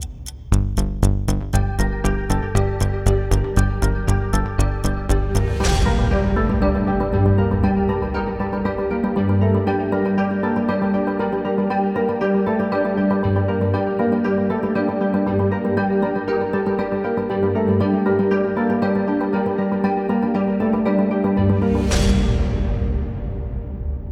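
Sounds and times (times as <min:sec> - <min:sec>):
tension music: 0:00.0 - 0:24.1.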